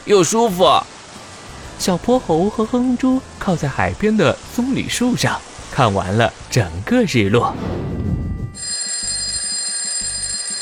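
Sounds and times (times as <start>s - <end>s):
speech: 0.0s - 0.9s, 1.8s - 8.0s
bedroom alarm clock ringing: 8.6s - 10.5s.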